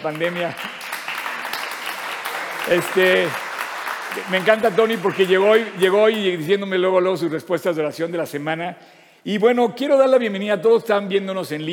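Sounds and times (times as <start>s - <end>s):
speech: 0.0s - 0.8s, 2.6s - 3.4s, 4.1s - 11.7s
audience applause: 0.0s - 6.5s.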